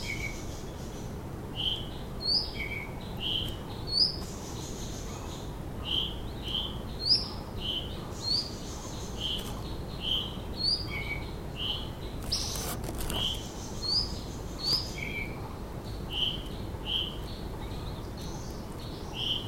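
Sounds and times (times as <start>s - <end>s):
white-tailed flycatcher Cyornis concretus: 0.0s - 19.4s.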